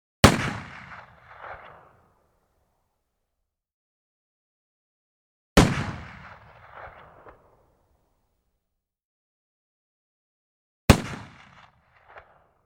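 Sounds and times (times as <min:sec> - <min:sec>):
Browning 4570 rifle shots: 0:00.2 - 0:02.0, 0:05.6 - 0:07.4, 0:10.9 - 0:12.4.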